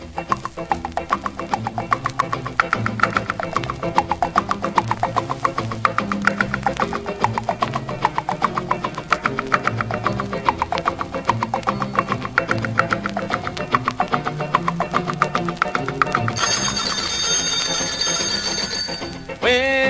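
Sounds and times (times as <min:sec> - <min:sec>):
bouncy rhythmic music track: 0:00.0 - 0:19.8
alarm clock bell ringing: 0:16.4 - 0:19.3.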